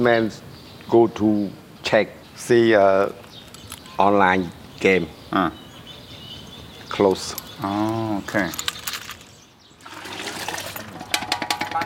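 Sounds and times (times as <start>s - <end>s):
speech: 0.0s - 3.2s, 4.0s - 5.6s, 6.9s - 8.7s
man washing his pots: 9.8s - 11.8s.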